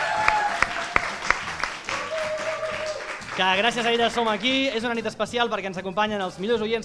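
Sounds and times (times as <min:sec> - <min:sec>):
audience applause: 0:00.0 - 0:04.7
speech: 0:03.4 - 0:06.8.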